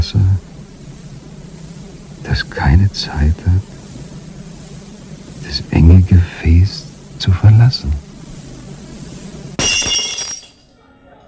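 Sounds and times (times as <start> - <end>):
speech: 2.2 - 3.8, 5.5 - 8.0
drinking glass shattering: 9.6 - 10.8.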